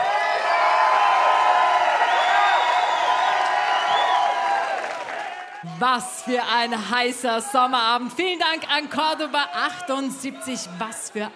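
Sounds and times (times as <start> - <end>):
audience applause: 0.0 - 6.2
speech: 5.8 - 11.3.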